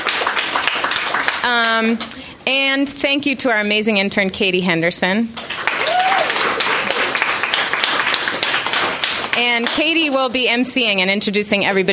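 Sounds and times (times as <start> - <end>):
audience clapping: 0.0 - 2.2, 5.4 - 10.3
speech: 1.4 - 5.6, 9.5 - 11.9.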